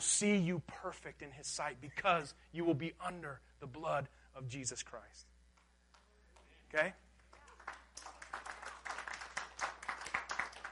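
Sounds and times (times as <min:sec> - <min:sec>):
speech: 0:00.0 - 0:05.3, 0:06.7 - 0:07.0
polite golf clap from audience: 0:07.3 - 0:10.7.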